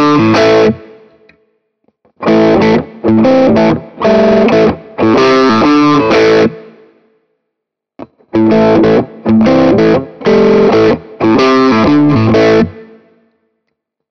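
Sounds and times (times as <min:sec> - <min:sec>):
Ibanez AR520HFM LBB mid-gain riff in all positions: 0:00.0 - 0:01.1, 0:02.2 - 0:06.8, 0:08.0 - 0:13.0.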